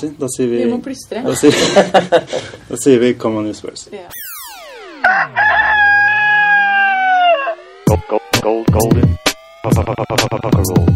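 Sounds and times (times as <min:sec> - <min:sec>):
speech: 0:00.0 - 0:04.3, 0:08.1 - 0:10.9
laughter: 0:01.3 - 0:02.6
rooster crowing: 0:04.9 - 0:08.0.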